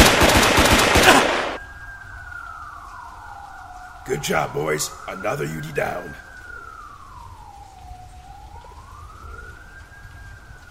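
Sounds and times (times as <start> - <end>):
rapid automatic gunfire: 0.0 - 1.5
speech: 4.2 - 6.3.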